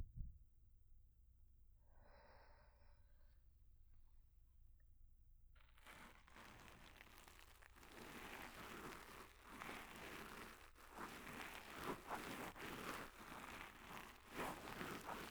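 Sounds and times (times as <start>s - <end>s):
ear cleaning: 5.6s - 15.2s.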